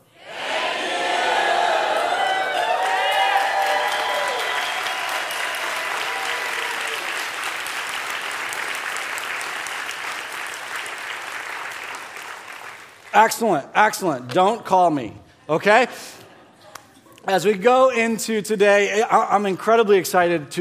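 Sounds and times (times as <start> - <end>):
audience cheering: 0.3 - 12.0
audience screaming thank you: 1.5 - 7.4
speech: 13.2 - 16.2, 17.2 - 20.5.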